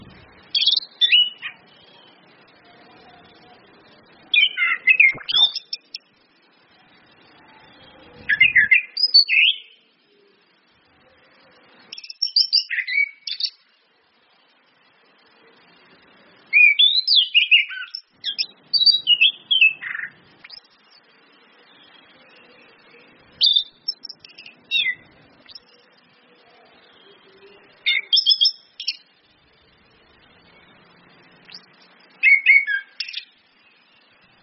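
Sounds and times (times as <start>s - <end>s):
Orange-headed thrush singing whistled phrases: 0.6s - 2.1s, 4.3s - 6.0s, 8.2s - 9.8s, 12.0s - 13.6s, 16.5s - 20.7s, 27.0s - 29.1s, 31.5s - 34.0s.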